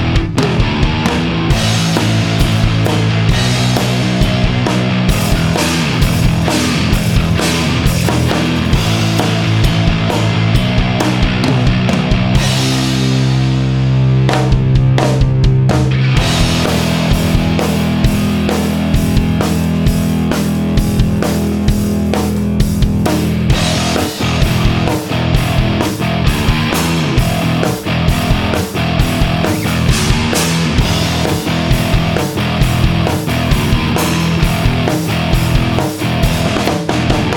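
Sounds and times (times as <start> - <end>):
bass guitar through a Mesa Boogie amp: 0.0 - 37.3.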